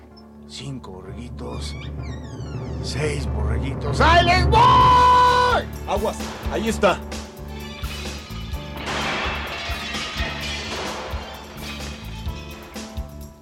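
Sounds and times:
speech: 0:00.5 - 0:07.2
low pulsing thump: 0:01.2 - 0:04.5
glass door shattering: 0:07.7 - 0:13.2
gunshot: 0:08.8 - 0:11.6.

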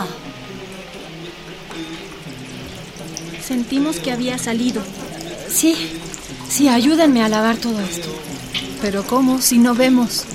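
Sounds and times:
rain pouring down: 0:00.0 - 0:10.3
speech: 0:03.5 - 0:05.0, 0:05.6 - 0:10.3.

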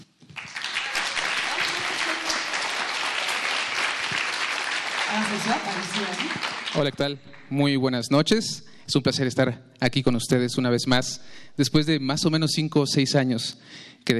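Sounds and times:
audience applause: 0:00.2 - 0:07.7
speech: 0:05.2 - 0:14.1.

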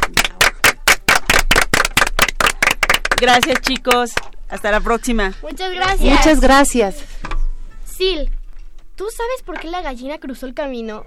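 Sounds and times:
audience applause: 0:00.0 - 0:04.3
speech: 0:03.2 - 0:07.1, 0:08.0 - 0:08.4, 0:09.0 - 0:11.0.

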